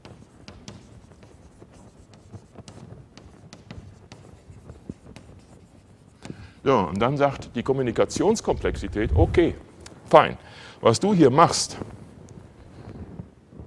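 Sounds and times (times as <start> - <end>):
handwriting during a lecture: 0.0 - 7.1
speech: 6.6 - 11.9.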